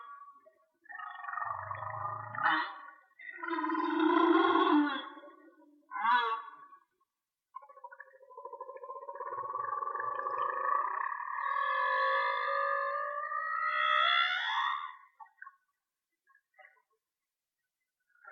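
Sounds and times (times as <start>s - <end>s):
whale song: 1.0s - 6.8s, 7.6s - 15.2s.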